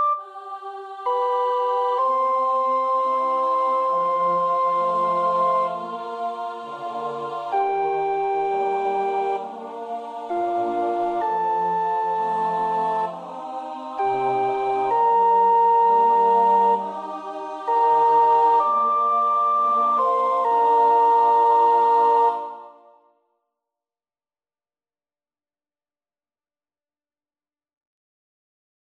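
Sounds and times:
soprano practising a choir part: 0.1s - 23.0s.

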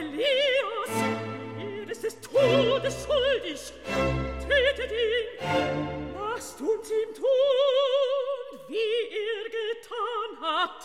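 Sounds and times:
singer performing recitative: 0.0s - 5.5s, 6.1s - 10.8s
choir singing: 0.0s - 7.4s.

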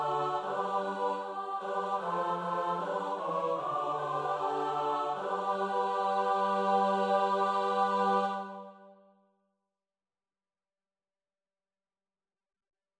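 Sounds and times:
SATB choir part practice: 0.0s - 9.0s.

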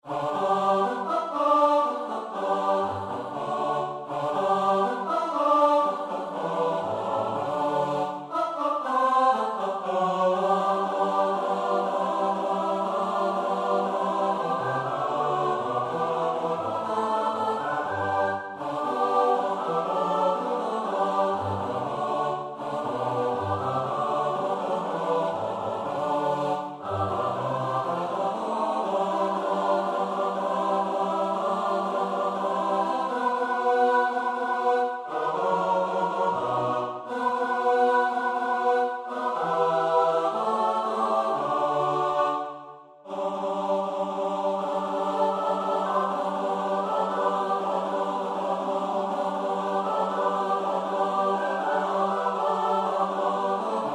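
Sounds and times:
SATB choir part practice: 0.0s - 53.9s.

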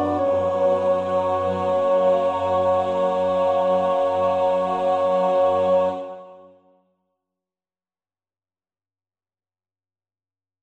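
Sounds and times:
alto choir part practice singing: 0.0s - 6.6s.

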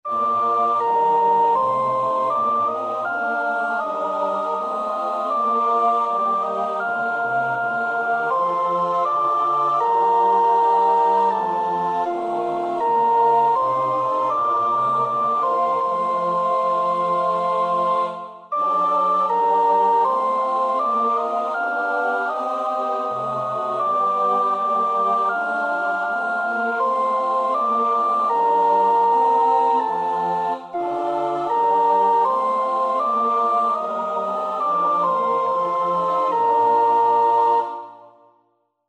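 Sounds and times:
soprano singing: 0.0s - 38.2s.

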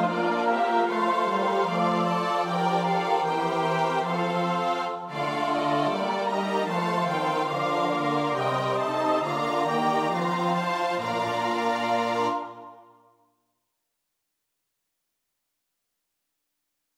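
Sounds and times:
soprano alto tenor bass voices: 0.0s - 12.8s.

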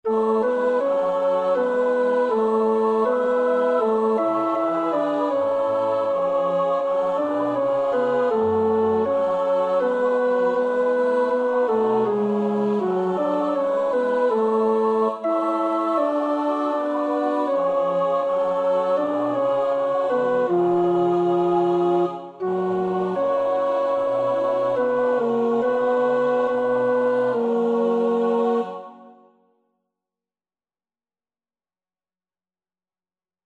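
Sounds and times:
tenor singing: 0.0s - 29.2s.

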